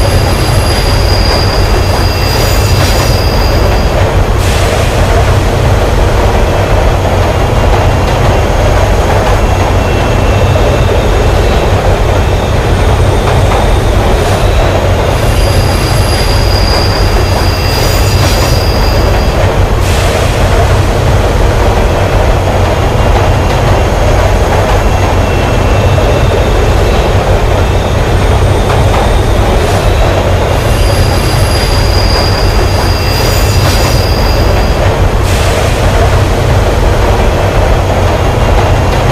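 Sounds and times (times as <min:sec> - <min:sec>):
subway train: 0:00.0 - 0:39.1.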